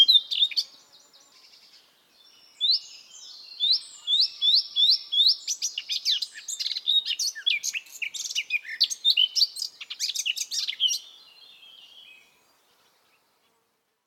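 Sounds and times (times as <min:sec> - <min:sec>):
Eurasian blackcap singing: 0:00.0 - 0:00.7, 0:02.2 - 0:12.2.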